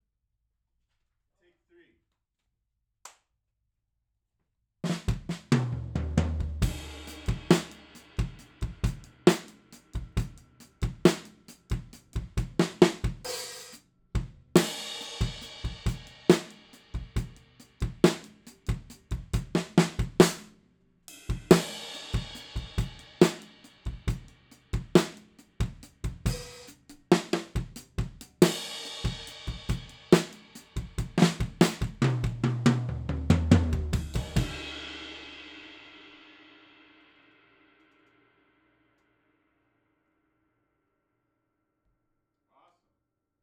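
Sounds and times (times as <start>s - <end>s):
drums: 4.8s - 38.1s.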